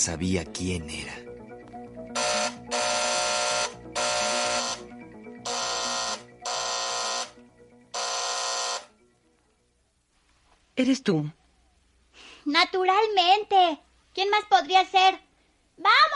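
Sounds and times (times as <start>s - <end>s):
speech: 0.0s - 1.2s, 10.8s - 11.4s, 12.4s - 15.2s, 15.8s - 16.1s
doorbell ringing insistently: 2.1s - 8.9s.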